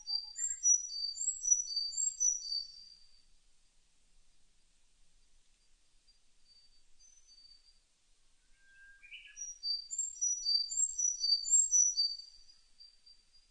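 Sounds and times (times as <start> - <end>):
Sakhalin leaf warbler singing: 0.0 - 3.0, 8.6 - 13.4.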